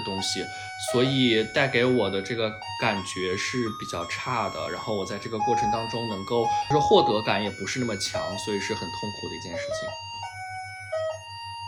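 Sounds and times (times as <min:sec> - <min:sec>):
speech: 0:00.2 - 0:10.2
electronic doorbell ringing: 0:02.6 - 0:11.6.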